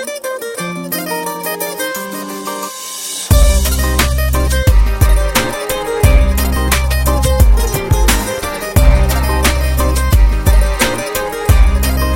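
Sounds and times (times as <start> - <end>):
Punjabi punk music: 3.2 - 12.1.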